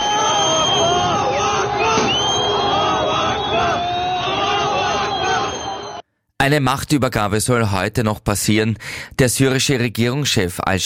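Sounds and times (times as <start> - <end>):
crowd cheering and shouting in the streets: 0.0 - 6.0
speech: 6.4 - 10.8.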